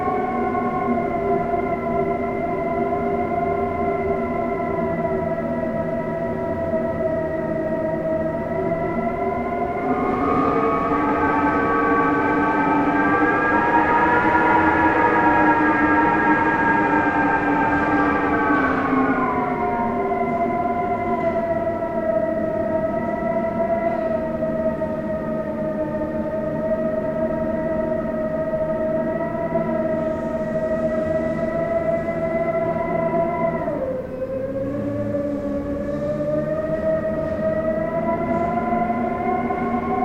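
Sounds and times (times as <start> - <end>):
extreme strong howling wind: 0.0 - 40.0.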